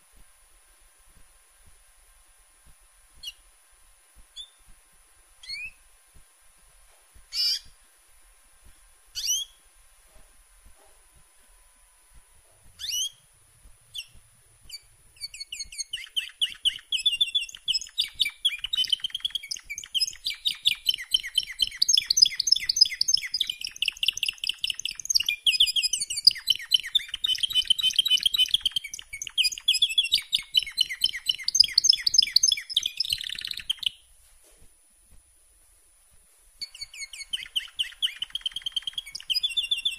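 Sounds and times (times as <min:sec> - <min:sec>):
canary singing: 0:03.2 - 0:03.5, 0:04.3 - 0:04.7, 0:05.4 - 0:05.9, 0:07.3 - 0:07.8, 0:09.1 - 0:09.7, 0:12.6 - 0:13.3, 0:13.9 - 0:34.1, 0:36.6 - 0:39.9.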